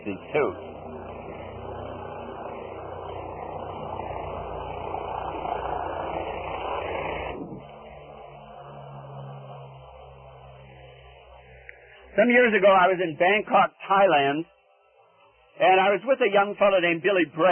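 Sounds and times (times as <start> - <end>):
speech: 0.0 - 0.6, 12.2 - 14.5, 15.6 - 17.5
helicopter flying overhead: 0.0 - 17.5.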